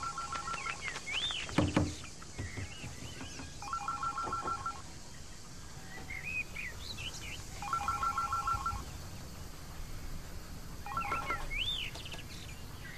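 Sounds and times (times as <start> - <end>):
telephone ringing: 0.0 - 0.5, 3.6 - 4.8, 7.6 - 8.8, 10.9 - 11.5
warbling chirp-like tones: 0.0 - 1.4, 3.6 - 4.8, 7.5 - 8.9, 10.8 - 11.8
hiss: 0.0 - 12.9.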